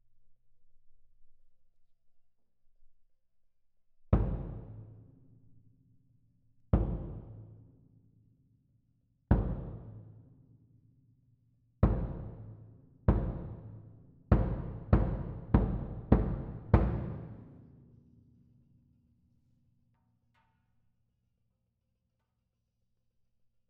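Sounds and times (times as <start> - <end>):
main kick drum: 4.2 - 4.8, 6.8 - 7.4, 9.3 - 10.0, 11.8 - 12.5, 13.1 - 17.5.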